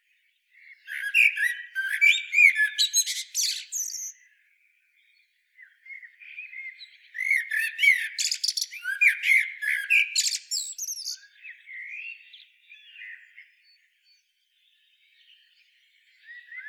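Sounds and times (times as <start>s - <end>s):
common blackbird Turdus merula uttering dense scratchy squeaky twittering notes: 0.9s - 4.1s, 7.2s - 11.2s.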